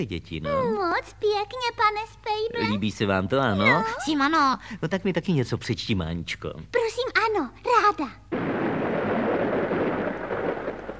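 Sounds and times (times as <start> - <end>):
speech: 0.0 - 8.2
thunder rolling: 8.3 - 10.9.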